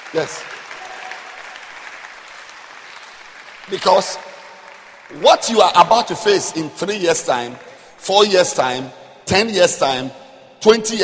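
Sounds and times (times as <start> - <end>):
audience applause: 0.0 - 6.1
speech: 0.1 - 0.6, 3.7 - 4.3, 5.1 - 11.0.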